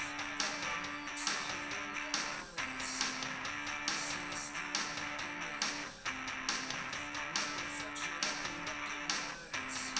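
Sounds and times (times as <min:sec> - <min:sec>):
drums recorded live: 0:00.0 - 0:09.9.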